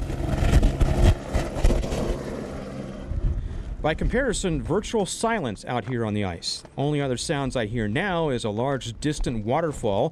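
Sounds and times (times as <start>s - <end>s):
helicopter taking off: 0.0s - 5.4s
speech: 3.8s - 10.1s.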